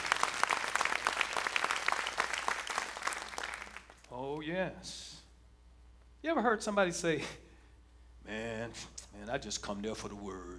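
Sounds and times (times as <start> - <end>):
audience clapping: 0.0 - 4.1
speech: 4.4 - 5.1, 6.2 - 7.4, 8.3 - 10.5.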